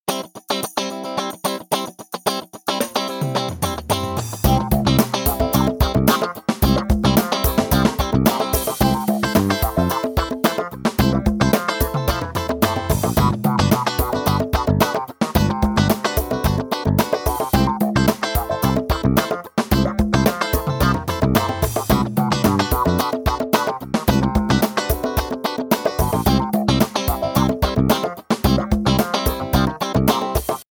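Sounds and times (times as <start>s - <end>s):
funk ringtones: 0.1s - 30.6s.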